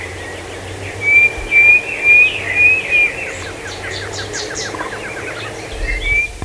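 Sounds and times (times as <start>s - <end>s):
bird chirps and whistles: 1.0s - 3.1s, 5.9s - 6.4s.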